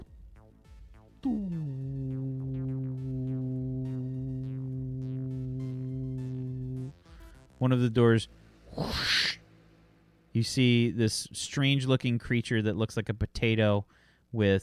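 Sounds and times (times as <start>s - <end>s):
speech: 1.2s - 1.6s, 7.6s - 9.4s, 10.4s - 14.6s
heart monitor flatline tone after lead pulled off: 1.2s - 6.9s.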